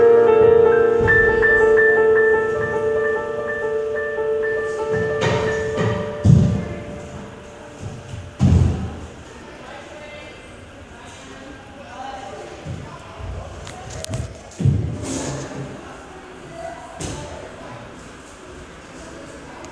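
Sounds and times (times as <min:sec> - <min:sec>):
piano noodling as ballet class lets out: 0:00.0 - 0:09.3.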